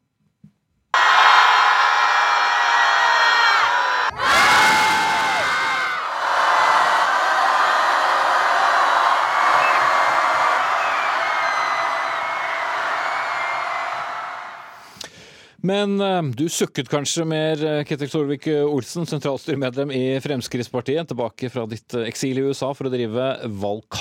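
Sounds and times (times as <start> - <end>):
large crowd of young climate protesters roaring: 1.0 - 14.8
speech: 15.6 - 24.0.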